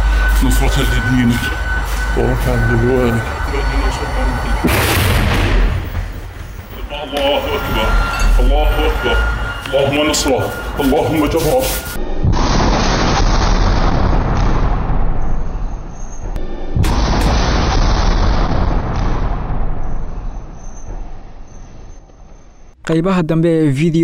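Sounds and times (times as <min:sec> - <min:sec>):
speech: 0:00.4 - 0:05.6, 0:06.9 - 0:12.5, 0:22.9 - 0:24.0
Yasin 105 rocket striking an Israeli military vehicle: 0:04.6 - 0:06.8, 0:12.2 - 0:15.8, 0:16.8 - 0:21.7.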